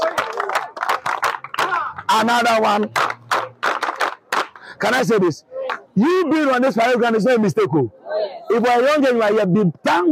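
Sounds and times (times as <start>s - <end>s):
audience clapping: 0.0s - 5.0s
speech: 2.1s - 3.0s, 4.8s - 10.1s.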